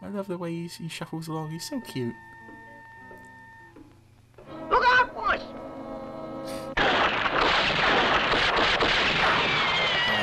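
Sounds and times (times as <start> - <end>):
speech: 0.0 - 2.4
gunfire: 6.8 - 10.2.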